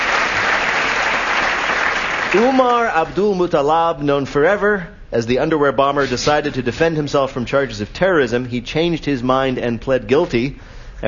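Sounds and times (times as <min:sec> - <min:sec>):
audience applause: 0:00.0 - 0:03.0
speech: 0:02.3 - 0:11.0.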